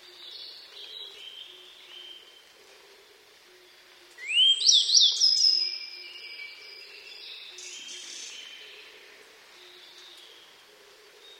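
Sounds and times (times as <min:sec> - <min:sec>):
Grey bunting song with high sweet notes and long thin whistle: 0:04.2 - 0:08.9.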